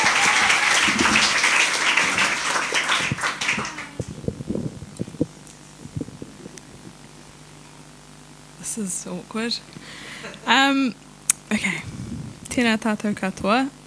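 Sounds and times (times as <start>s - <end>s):
round of applause: 0.0s - 4.2s
speech: 8.8s - 9.8s, 10.5s - 12.0s, 12.6s - 13.8s.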